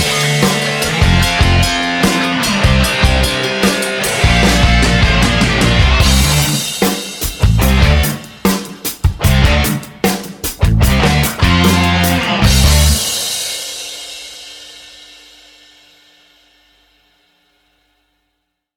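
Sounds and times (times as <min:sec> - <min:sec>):
bluesy rock music: 0:00.0 - 0:13.6.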